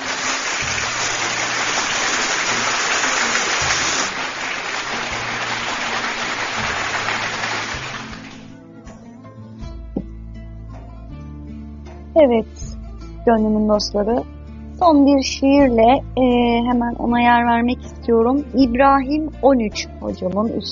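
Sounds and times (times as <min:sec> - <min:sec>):
crowd applause: 0:00.0 - 0:08.6
speech: 0:12.2 - 0:20.7.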